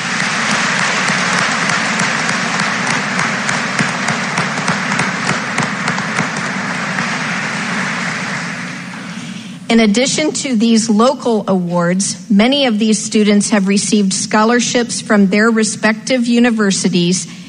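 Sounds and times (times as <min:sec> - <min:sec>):
audience applause: 0:00.0 - 0:09.5
speech: 0:09.7 - 0:17.4.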